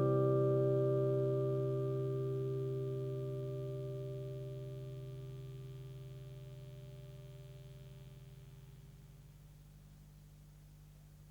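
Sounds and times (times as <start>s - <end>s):
Stratocaster guitar on neck and middle pickups almost clean: 0.0s - 8.8s.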